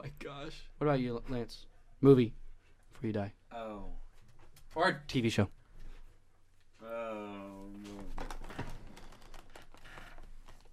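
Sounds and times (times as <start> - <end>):
speech: 0.2 - 2.4, 3.0 - 4.0, 4.7 - 5.6
squeaky chair: 7.8 - 10.7.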